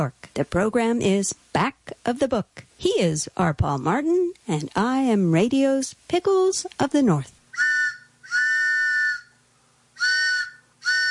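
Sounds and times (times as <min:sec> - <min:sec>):
speech: 0:00.0 - 0:07.4
train whistle: 0:07.6 - 0:09.3, 0:10.0 - 0:11.0.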